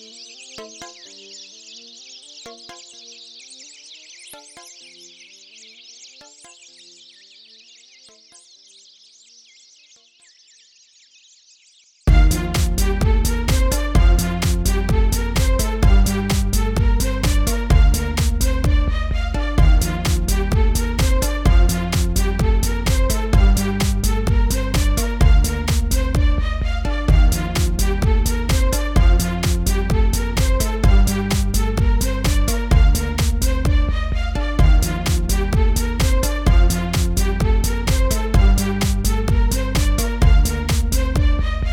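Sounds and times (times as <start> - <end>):
house music mix: 12.1 - 41.7.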